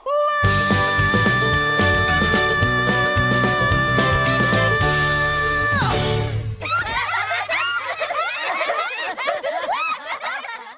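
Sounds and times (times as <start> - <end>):
person singing a vocal cover: 0.1 - 6.3
laughter: 6.6 - 10.7.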